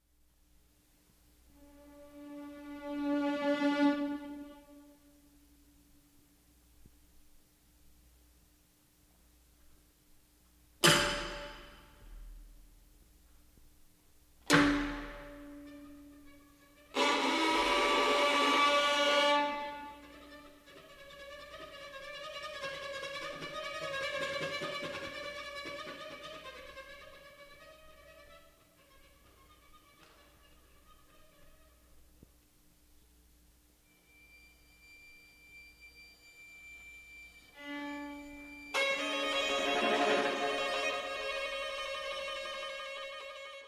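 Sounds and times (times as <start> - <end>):
string quartet playing tranquillo: 1.7 - 4.7, 14.5 - 30.9, 37.5 - 43.6.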